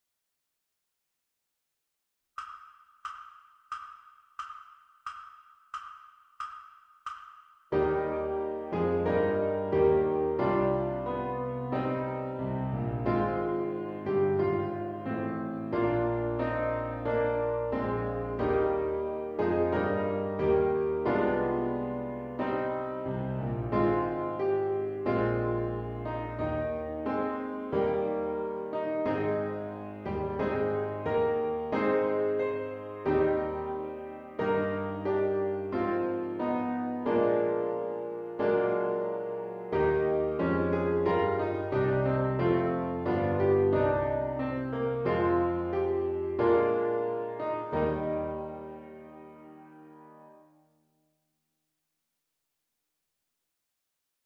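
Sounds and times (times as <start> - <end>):
Christmas piano music: 7.7 - 50.6.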